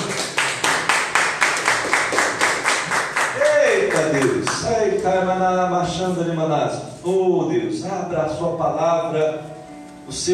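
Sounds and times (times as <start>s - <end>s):
audience applauding: 0.0s - 4.6s
speech: 5.0s - 9.5s, 10.1s - 10.3s.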